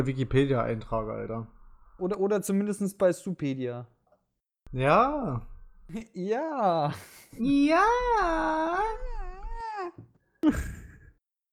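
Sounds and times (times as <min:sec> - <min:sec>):
speech: 0:00.0 - 0:04.0, 0:04.7 - 0:09.1, 0:09.8 - 0:10.8
child crying after being hit in the face by a basketball: 0:07.4 - 0:10.0.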